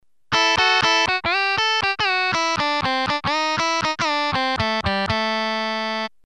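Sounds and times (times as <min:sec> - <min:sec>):
musical lick: 0:00.3 - 0:06.1.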